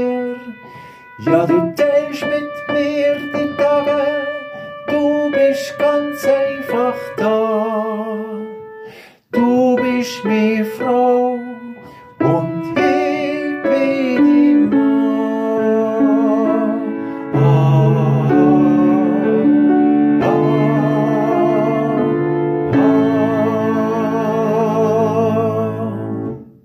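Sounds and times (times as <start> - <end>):
soprano singing: 0.0 - 26.5.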